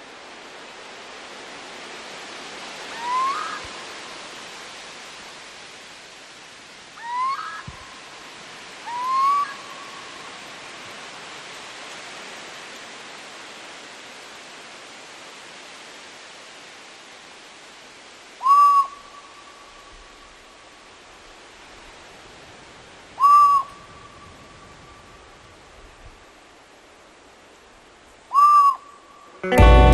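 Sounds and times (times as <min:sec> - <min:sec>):
bird call: 0:02.9 - 0:03.8, 0:07.0 - 0:08.0, 0:08.8 - 0:10.3, 0:18.4 - 0:19.6, 0:23.2 - 0:24.6, 0:28.3 - 0:29.0
speech: 0:29.4 - 0:29.8.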